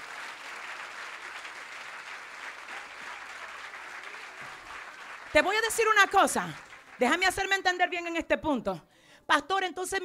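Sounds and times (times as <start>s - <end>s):
audience clapping: 0.0s - 8.0s
speech: 5.3s - 10.0s.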